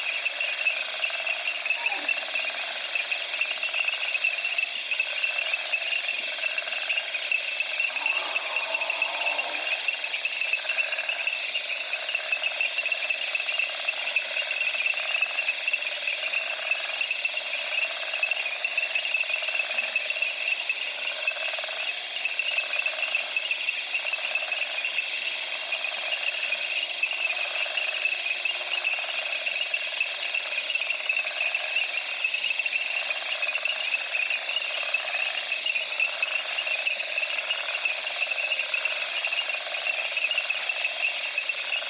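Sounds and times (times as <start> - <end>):
crickets at night in the Okavango: 0.0 - 41.8
frogs in reeds in the Okavango: 0.0 - 41.8.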